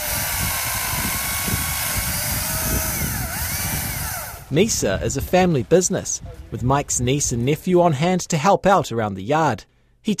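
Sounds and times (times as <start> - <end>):
power saw cutting bottoms off Christmas tree trunks: 0.0 - 4.6
speech: 4.5 - 10.1.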